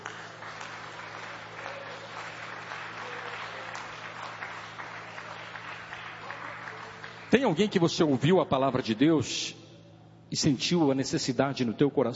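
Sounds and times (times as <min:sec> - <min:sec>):
audience applauding: 0:00.0 - 0:08.2
speech: 0:07.3 - 0:09.6, 0:10.3 - 0:12.1.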